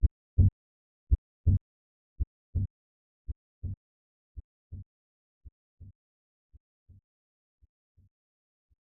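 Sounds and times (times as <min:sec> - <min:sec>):
heartbeat: 0:00.0 - 0:01.6, 0:02.5 - 0:02.7, 0:03.6 - 0:03.8.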